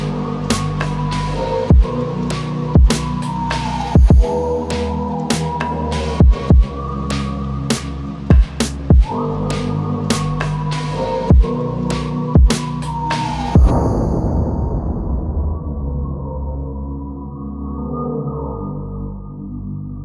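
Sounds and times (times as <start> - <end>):
slowed whistle with reverb: 0.5 - 6.4, 9.0 - 16.8.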